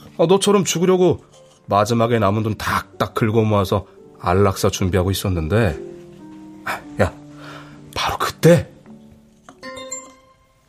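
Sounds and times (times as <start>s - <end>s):
speech: 0.2s - 5.9s, 6.7s - 7.2s, 8.4s - 8.7s
message notification chime: 9.6s - 10.6s.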